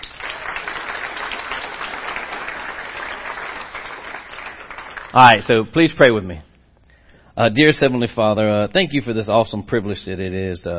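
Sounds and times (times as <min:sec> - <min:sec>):
crowd applauding: 0:00.0 - 0:05.4
speech: 0:05.1 - 0:06.5, 0:07.4 - 0:10.7.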